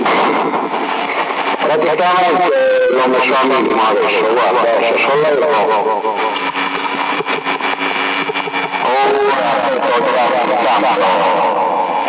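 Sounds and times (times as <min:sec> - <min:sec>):
steady buzzy hum: 0:00.0 - 0:12.0
voice over M300 CB radio transmission with heavy echo: 0:01.6 - 0:06.4, 0:08.8 - 0:12.0
speech: 0:01.7 - 0:06.6, 0:08.9 - 0:11.6.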